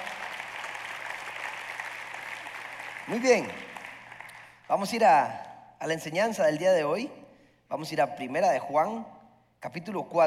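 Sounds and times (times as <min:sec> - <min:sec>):
audience applause: 0:00.0 - 0:04.7
speech: 0:03.1 - 0:03.7, 0:04.7 - 0:10.2.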